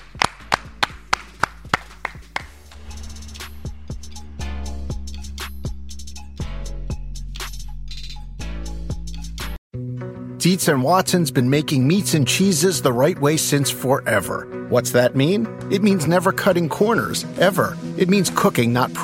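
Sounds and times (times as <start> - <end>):
hand clapping: 0.0 - 2.7
speech: 10.4 - 19.0.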